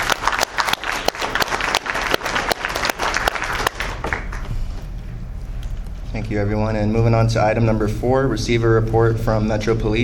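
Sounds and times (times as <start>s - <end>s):
round of applause from meeting audience: 0.0s - 4.5s
speech: 6.3s - 10.0s.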